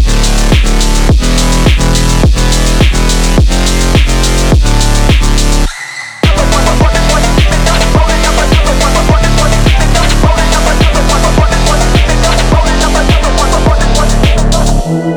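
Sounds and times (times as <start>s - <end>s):
phonk music: 0.0s - 15.1s.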